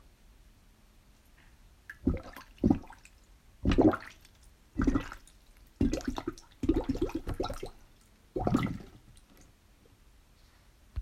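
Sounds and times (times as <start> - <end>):
water: 1.8 - 9.6.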